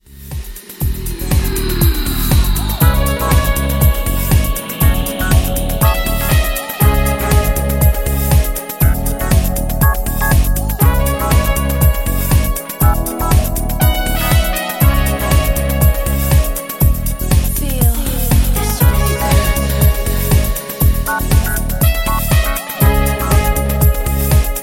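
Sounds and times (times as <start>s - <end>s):
beat: 0.0s - 24.6s.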